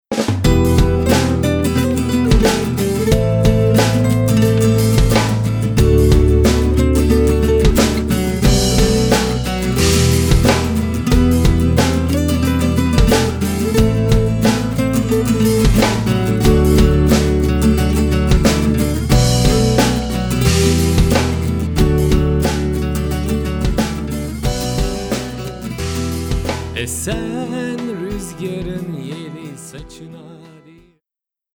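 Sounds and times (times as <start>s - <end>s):
acoustic arrangement: 0.1s - 30.9s.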